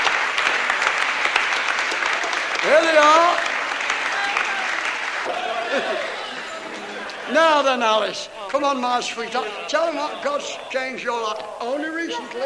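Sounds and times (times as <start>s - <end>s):
audience applause: 0.0s - 12.4s
speech: 2.6s - 3.5s, 5.7s - 6.1s, 7.3s - 12.4s
laughter: 5.2s - 12.4s.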